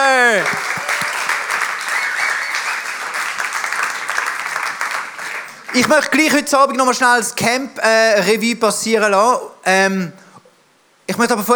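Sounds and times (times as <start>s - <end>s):
big audience applause: 0.0s - 6.0s
speech: 5.8s - 10.2s, 11.2s - 11.5s.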